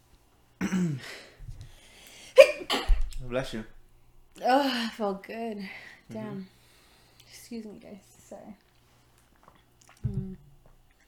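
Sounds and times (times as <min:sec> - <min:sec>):
speech: 0:00.7 - 0:01.3, 0:02.7 - 0:03.8, 0:04.4 - 0:06.6, 0:07.4 - 0:08.6
person sneezing: 0:02.4 - 0:03.0.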